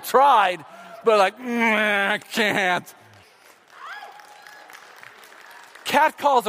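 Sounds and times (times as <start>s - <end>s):
speech: 0.1s - 3.0s, 5.9s - 6.4s
audience applause: 2.0s - 6.4s.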